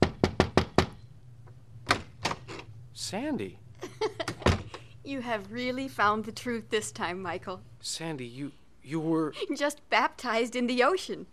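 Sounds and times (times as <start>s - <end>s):
knocking on door: 0.0s - 1.0s
speech: 3.0s - 3.6s, 5.0s - 11.3s.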